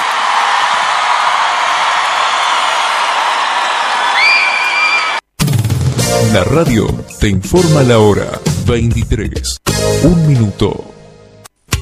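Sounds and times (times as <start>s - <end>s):
large crowd applauding and cheering: 0.0s - 5.2s
whistles and whoops: 4.0s - 5.2s
speech: 6.3s - 10.9s.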